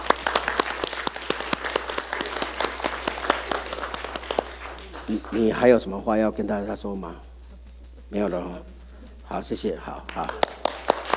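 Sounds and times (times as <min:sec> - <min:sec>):
audience clapping: 0:00.0 - 0:06.0, 0:10.0 - 0:11.1
speech: 0:05.3 - 0:07.3, 0:08.1 - 0:10.4.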